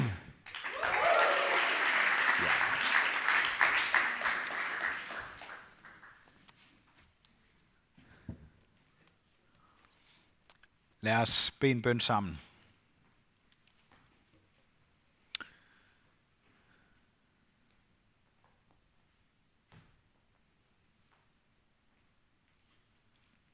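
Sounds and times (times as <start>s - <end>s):
crowd applauding and cheering: 0.0s - 6.4s
speech: 11.0s - 12.5s.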